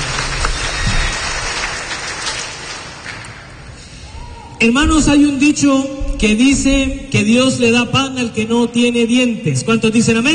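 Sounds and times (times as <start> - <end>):
audience clapping: 0.0 - 3.6
speech: 4.6 - 10.3.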